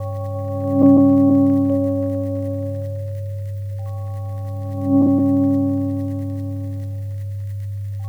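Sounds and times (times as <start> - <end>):
minimal synth sequences: 0.0 - 8.0.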